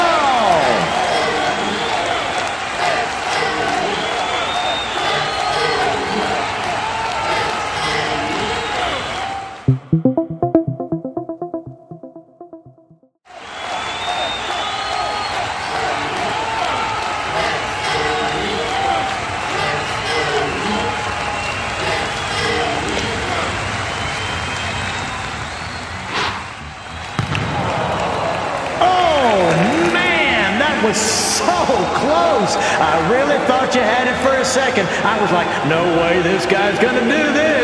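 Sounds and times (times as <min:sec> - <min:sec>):
crowd cheering and clapping: 0:00.0 - 0:11.7, 0:13.3 - 0:37.5
tonal voice-like sound: 0:09.7 - 0:13.1.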